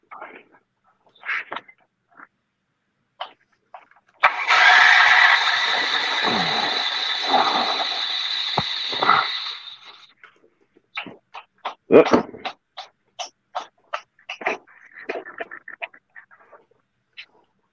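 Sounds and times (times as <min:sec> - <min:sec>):
generator engine starting and running: 0:04.2 - 0:10.1
seafoam spray hissing: 0:04.2 - 0:10.1.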